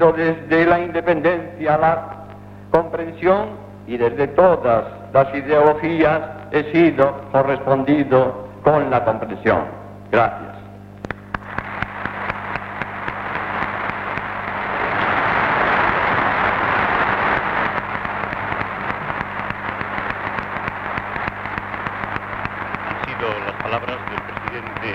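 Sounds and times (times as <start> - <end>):
speech: 0.0 - 10.5
sustained applause from deputies and senators: 11.4 - 24.9.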